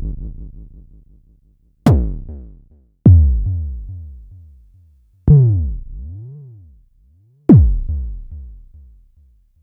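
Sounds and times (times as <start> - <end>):
Jomox Airbase990 drum machine: 1.9 - 2.4, 3.1 - 4.0, 7.5 - 8.8.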